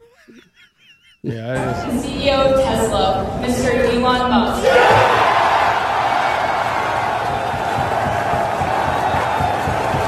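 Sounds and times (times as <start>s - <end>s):
laughter: 0.0s - 2.2s
speech: 1.2s - 5.2s
large crowd roaring and cheering: 4.5s - 10.0s.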